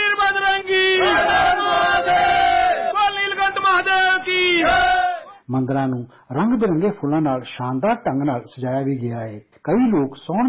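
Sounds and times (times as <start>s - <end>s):
devotees chanting slogans in a temple: 0.2s - 5.4s
speech: 5.5s - 10.4s.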